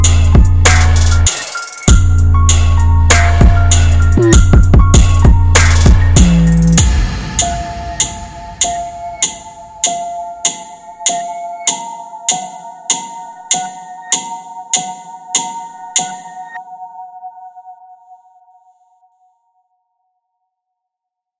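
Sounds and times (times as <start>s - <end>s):
cloud rap instrumental: 0.0s - 16.9s.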